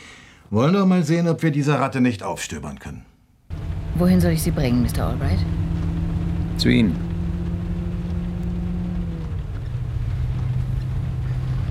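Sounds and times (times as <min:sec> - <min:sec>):
speech: 0:00.5 - 0:03.1, 0:04.0 - 0:05.6, 0:06.6 - 0:07.1
car engine droning while driving through traffic in heavy rain: 0:03.5 - 0:11.6
hiss from heavy rain and wet road: 0:03.5 - 0:11.6.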